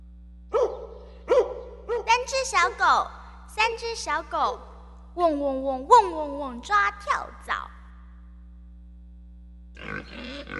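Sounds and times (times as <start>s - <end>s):
speech: 2.3s - 7.8s, 9.8s - 10.5s
pig grunting: 9.8s - 10.5s.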